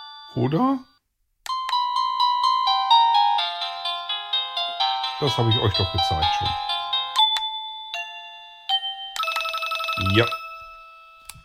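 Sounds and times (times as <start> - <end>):
wireless doorbell chime melody: 0.0 - 11.4
speech: 0.3 - 0.9, 5.2 - 6.7, 10.0 - 10.4.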